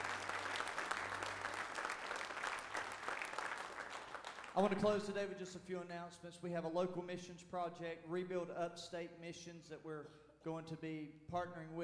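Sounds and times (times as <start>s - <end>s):
audience clapping: 0.0s - 5.0s
speech: 4.6s - 11.8s.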